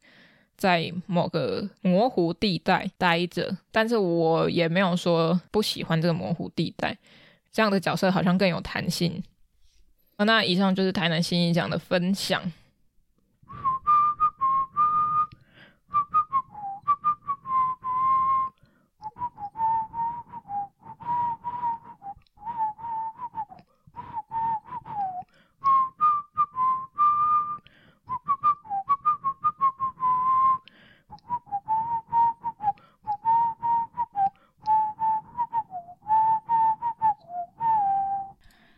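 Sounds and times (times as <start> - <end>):
speech: 0.6 - 9.3, 10.2 - 12.6
person whistling a song tune: 13.4 - 38.4.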